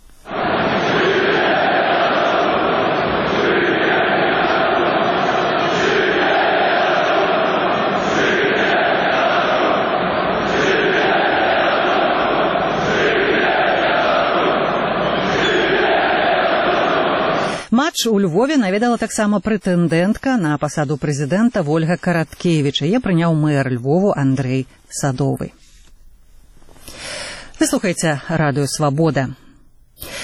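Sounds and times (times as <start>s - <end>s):
stadium crowd chanting Belarusian and Ukrainian patriotic slogans: 0.0s - 17.7s
speech: 17.9s - 25.6s, 26.9s - 29.4s.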